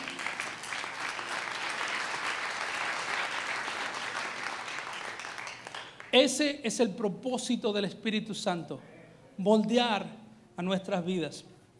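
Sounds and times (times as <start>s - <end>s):
audience applauding: 0.0s - 6.2s
speech: 6.1s - 11.5s.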